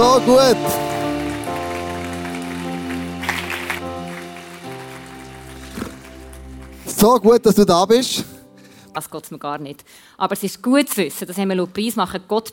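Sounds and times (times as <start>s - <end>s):
audience applause: 0.0s - 7.4s
speech: 0.2s - 0.9s, 7.0s - 8.4s, 9.0s - 12.5s.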